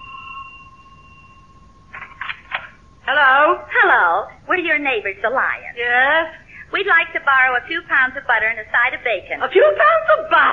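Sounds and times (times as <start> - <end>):
doorbell ringing with a two-note electronic tone: 0.0 - 3.1
speech: 3.1 - 10.5.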